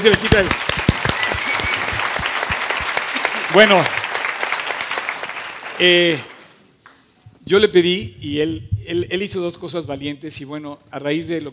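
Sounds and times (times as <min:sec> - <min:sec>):
speech: 0:00.0 - 0:00.8, 0:03.5 - 0:04.0, 0:05.8 - 0:06.3, 0:07.5 - 0:11.5
audience applause: 0:00.0 - 0:06.6.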